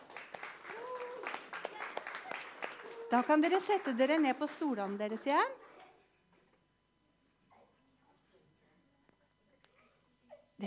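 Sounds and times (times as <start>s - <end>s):
audience applause: 0.0s - 5.4s
speech: 3.1s - 5.6s.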